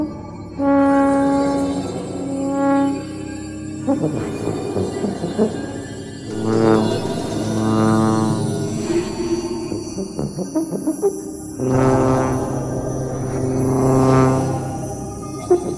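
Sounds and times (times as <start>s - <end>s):
tuba: 0.0s - 15.7s.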